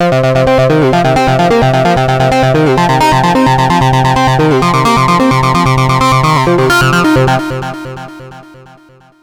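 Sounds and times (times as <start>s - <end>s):
bass loop in B flat: 0.0s - 8.4s.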